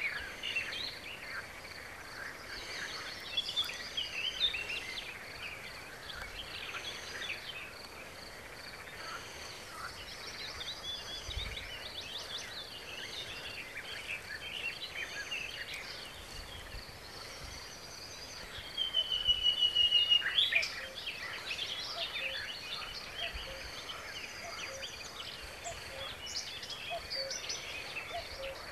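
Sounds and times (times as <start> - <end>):
common nightingale Luscinia megarhynchos song: 0.0 - 28.7.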